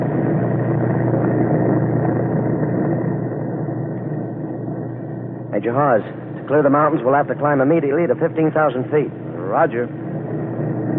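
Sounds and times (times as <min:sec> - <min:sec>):
B-29 bomber engines roaring: 0:00.0 - 0:10.9
speech: 0:05.6 - 0:10.0.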